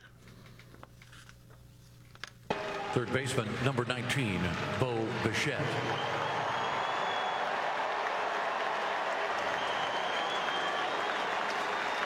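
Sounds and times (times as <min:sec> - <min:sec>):
stadium crowd applauding: 0:02.5 - 0:12.0
speech: 0:03.0 - 0:06.4.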